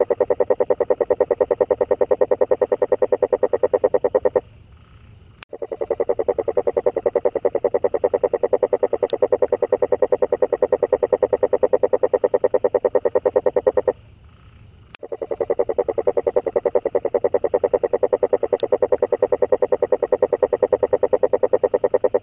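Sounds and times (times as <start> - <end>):
frog calling in a steady rapid pulsed trill: 0.0 - 4.4, 5.5 - 14.0, 15.0 - 22.2.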